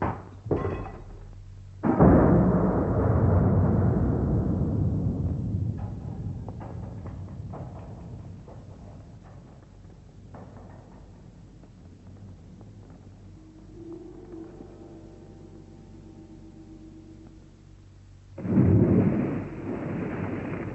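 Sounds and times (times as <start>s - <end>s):
houses falling off a bridge: 0.0s - 13.8s, 18.4s - 20.7s.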